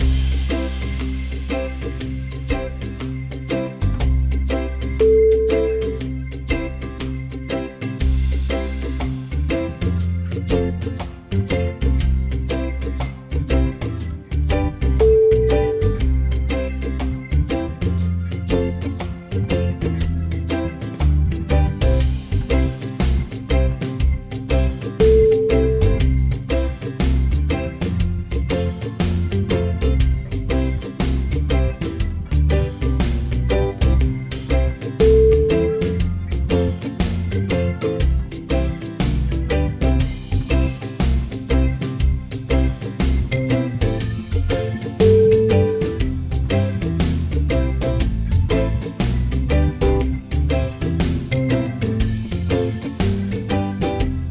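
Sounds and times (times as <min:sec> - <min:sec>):
reggae music: 0:00.0 - 0:54.3.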